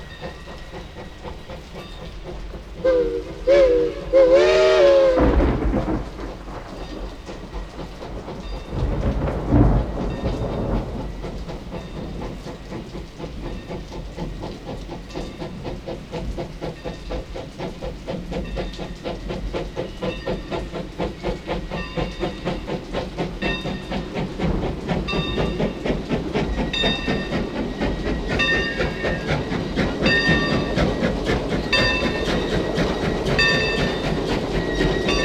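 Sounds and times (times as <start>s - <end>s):
steam railroad train: 0.0s - 35.2s
thunder: 5.0s - 7.5s, 8.2s - 11.4s.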